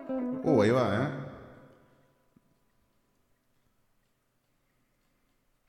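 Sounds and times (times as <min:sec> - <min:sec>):
nineties-style reverb effect: 0:00.2 - 0:02.0
speech: 0:00.6 - 0:01.2.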